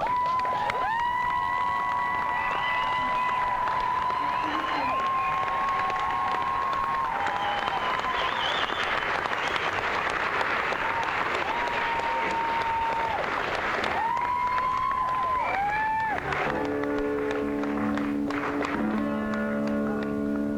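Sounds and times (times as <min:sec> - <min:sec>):
crowd: 0:00.0 - 0:20.5.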